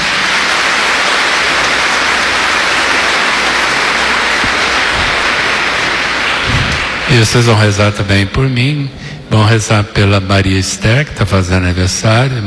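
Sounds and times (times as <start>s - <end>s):
applause: 0.0s - 8.1s
speech: 7.1s - 12.4s.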